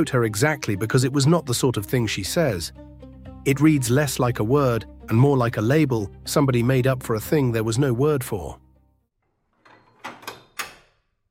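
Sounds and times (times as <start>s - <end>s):
speech: 0.0s - 8.6s
workshop door bolt sliding: 9.4s - 11.1s.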